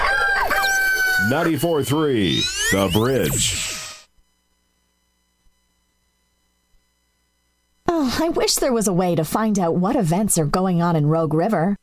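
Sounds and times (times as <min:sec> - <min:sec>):
rooster crowing: 0:00.0 - 0:01.6
speech: 0:01.3 - 0:03.8, 0:08.2 - 0:11.8.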